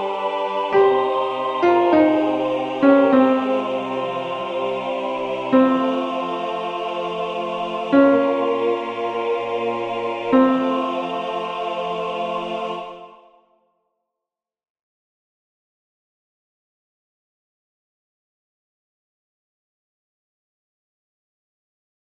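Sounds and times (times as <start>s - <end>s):
alto voice singing a sacred song: 0.0s - 13.4s.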